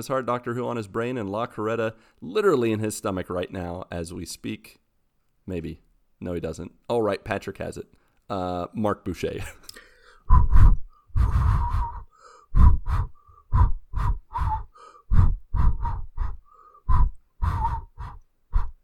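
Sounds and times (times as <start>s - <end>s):
speech: 0.0s - 4.8s, 5.5s - 11.4s
person trying to whistle with breathy puffs of air: 10.3s - 18.8s.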